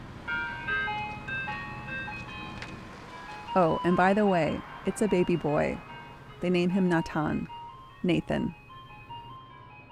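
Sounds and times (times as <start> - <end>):
tinny music-box ice cream truck jingle: 0.1 - 9.8
speech: 3.6 - 8.6.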